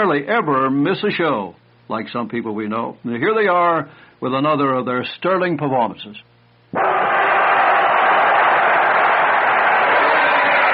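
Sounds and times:
speech: 0:00.0 - 0:07.0
studio audience applause for a Bob and Ray comedy show: 0:06.8 - 0:10.7.

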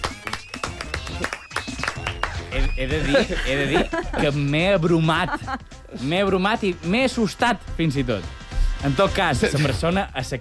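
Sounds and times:
audience applause: 0:00.0 - 0:02.5
speech: 0:02.5 - 0:10.3
laughter: 0:02.6 - 0:05.7.

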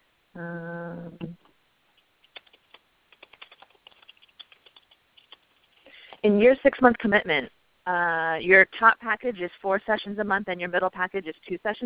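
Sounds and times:
speech: 0:00.4 - 0:01.4, 0:06.2 - 0:11.8
typing a note on a computer keyboard: 0:02.2 - 0:05.8.

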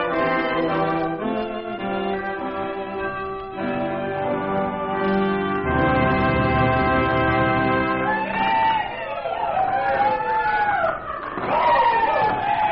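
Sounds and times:
sustained musical tone: 0:00.1 - 0:08.4
joyous crowd shouts on roller coaster: 0:08.1 - 0:12.6.

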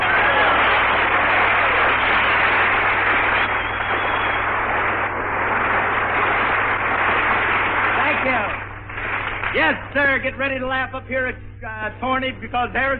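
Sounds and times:
audience clapping hands: 0:00.0 - 0:10.3
speech: 0:10.2 - 0:12.9.

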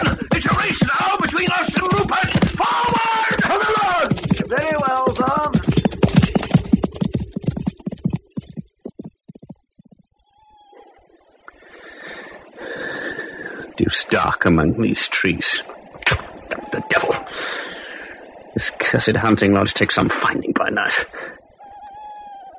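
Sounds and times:
horse hooves galloping: 0:00.0 - 0:11.0, 0:15.6 - 0:17.4
speech: 0:14.4 - 0:16.2, 0:18.9 - 0:21.1.

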